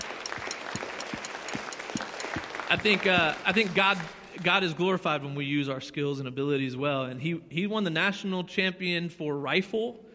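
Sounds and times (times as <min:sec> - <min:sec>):
audience applauding: 0:00.0 - 0:05.0
speech: 0:02.7 - 0:10.0.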